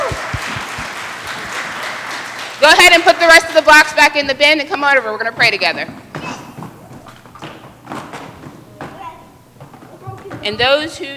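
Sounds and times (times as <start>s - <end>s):
audience applause: 0.0s - 3.8s
speech: 2.6s - 6.0s, 10.4s - 11.1s.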